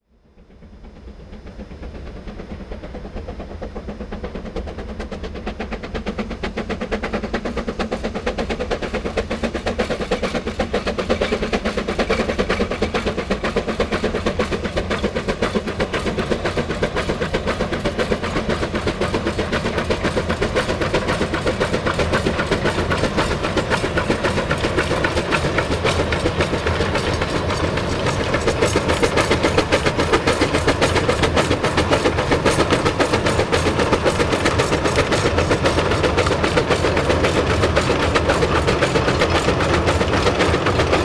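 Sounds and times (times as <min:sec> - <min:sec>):
steam locomotive in China: 0:00.0 - 0:41.0.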